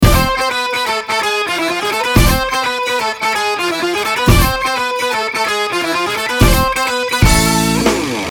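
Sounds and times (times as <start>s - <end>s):
ringtone: 0.0s - 8.2s.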